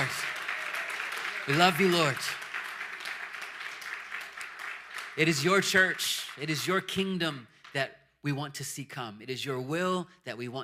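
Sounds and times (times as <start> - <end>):
audience clapping hands: 0.0 - 7.9
speech: 1.5 - 2.4, 5.2 - 10.6.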